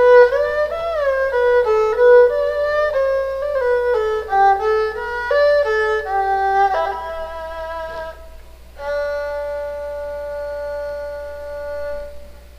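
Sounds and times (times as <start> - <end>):
erhu: 0.0 - 12.5.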